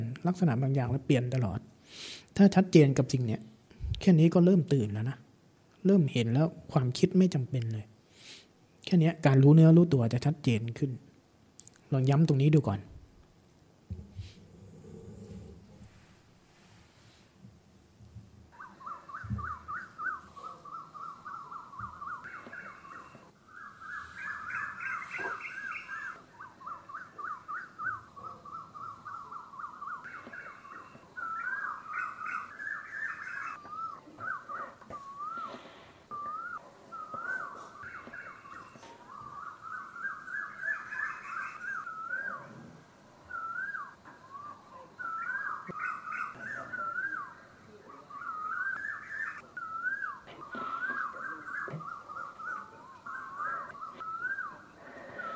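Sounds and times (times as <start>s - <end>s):
speech: 0.2s - 5.2s, 5.8s - 7.9s, 8.8s - 11.0s, 11.9s - 12.9s
birds singing: 18.5s - 55.3s.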